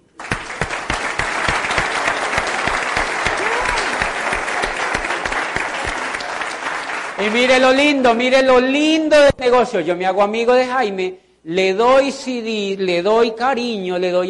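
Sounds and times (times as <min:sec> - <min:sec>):
audience applause: 0:00.0 - 0:07.9
speech: 0:07.2 - 0:14.2.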